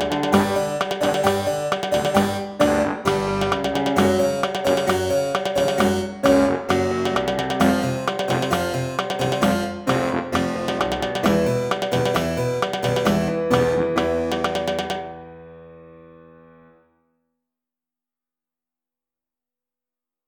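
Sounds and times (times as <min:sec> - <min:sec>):
bass trombone playing at tempi 112 and 132: 0:00.0 - 0:14.5.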